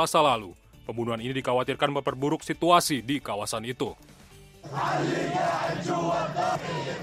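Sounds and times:
speech: 0:00.0 - 0:07.0
large crowd chanting slogans in the street: 0:04.6 - 0:07.0.

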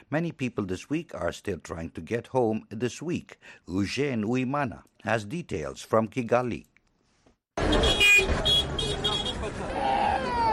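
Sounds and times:
speech: 0:00.1 - 0:06.7
busy bus station ambience at Nyabugogo National Bus Station: 0:06.8 - 0:10.5
honking horns: 0:07.6 - 0:09.7.

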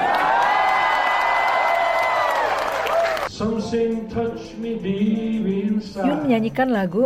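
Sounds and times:
crowd clapping and cheering after a song: 0:00.0 - 0:03.3
speech: 0:03.4 - 0:07.0.

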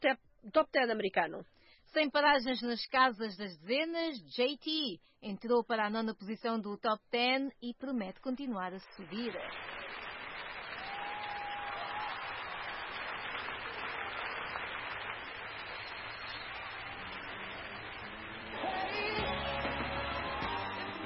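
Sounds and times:
speech: 0:00.0 - 0:10.0
applause: 0:09.1 - 0:21.0.

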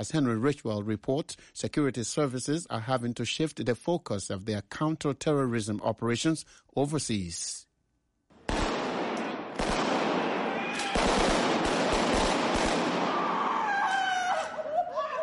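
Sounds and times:
speech: 0:00.0 - 0:07.7
gunfire from gunmen shooting their way into a London metro station: 0:08.4 - 0:13.6
laughter: 0:13.7 - 0:15.2.

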